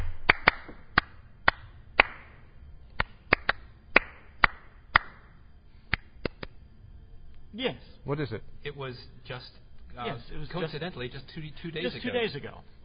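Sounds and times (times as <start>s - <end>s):
hands clapping a song-like rhythm: 0.0s - 6.6s
faint hiss: 0.0s - 12.8s
speech: 7.6s - 12.8s.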